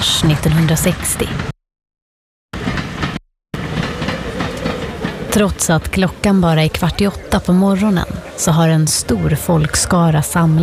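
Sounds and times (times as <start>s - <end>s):
passenger train rolling into a station in a Memphis snowstorm: 0.0s - 1.5s, 2.6s - 10.6s
speech: 0.2s - 1.5s, 5.3s - 10.6s
train wheels clickety-clack: 2.6s - 7.4s.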